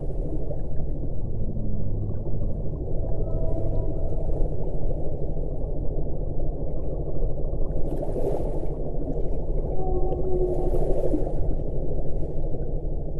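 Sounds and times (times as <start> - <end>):
whale sounds: 0.2 - 13.1.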